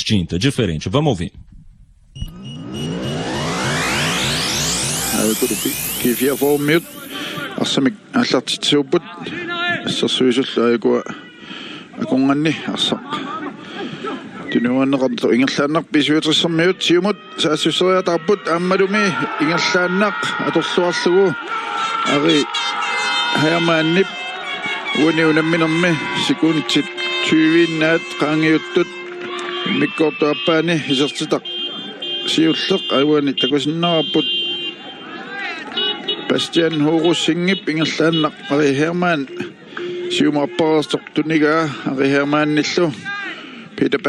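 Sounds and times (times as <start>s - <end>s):
speech: 0.0s - 1.5s, 5.2s - 11.2s, 12.0s - 13.4s, 14.5s - 24.2s, 24.9s - 29.0s, 29.6s - 31.6s, 32.2s - 34.5s, 36.3s - 39.5s, 40.1s - 43.2s, 43.8s - 44.0s
car horns honking to celebrate a goal: 2.2s - 7.6s, 22.7s - 41.0s.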